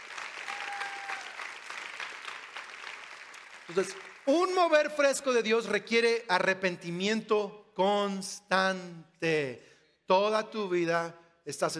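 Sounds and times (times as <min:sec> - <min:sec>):
church audience applauding: 0:00.0 - 0:05.7
speech: 0:03.7 - 0:11.7.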